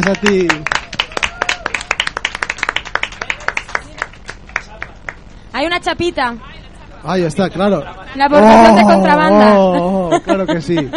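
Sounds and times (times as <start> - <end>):
speech: 0.0 - 0.8, 5.6 - 10.9
applause: 0.0 - 5.2
laughter: 8.4 - 10.9.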